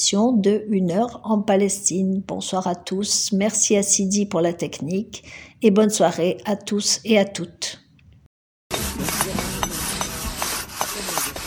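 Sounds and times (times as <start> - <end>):
speech: 0.0 - 7.8
scraping from archaeological restoration work at a monastery in Gaza: 8.7 - 11.4.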